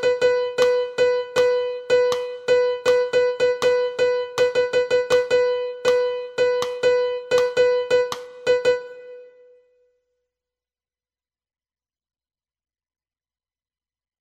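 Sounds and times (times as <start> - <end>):
piano: 0.0 - 9.8.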